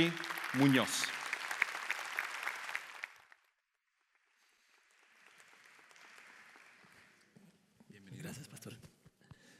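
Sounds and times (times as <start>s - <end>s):
speech: 0.0s - 1.2s
audience applause: 0.0s - 7.3s.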